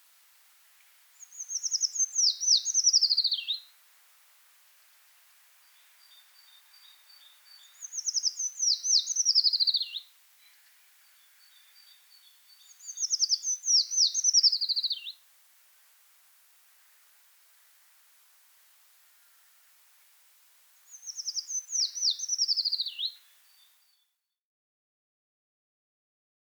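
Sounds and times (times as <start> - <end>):
common treecreeper calling: 1.1 - 3.8, 5.7 - 15.2, 20.9 - 24.0.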